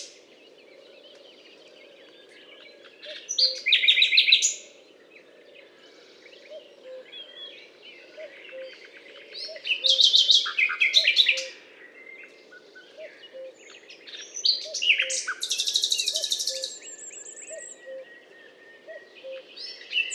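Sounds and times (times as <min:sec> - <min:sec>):
common nightingale singing on a limestone hillock in France: 0:00.0 - 0:20.1.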